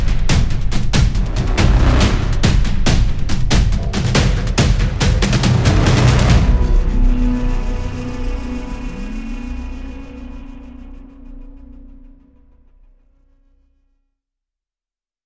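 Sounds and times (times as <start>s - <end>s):
drum ensemble: 0.0s - 8.3s.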